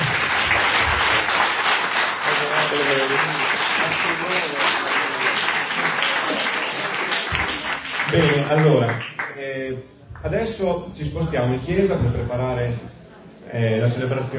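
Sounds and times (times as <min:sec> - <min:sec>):
audience applause: 0:00.0 - 0:09.4
speech: 0:08.5 - 0:14.3.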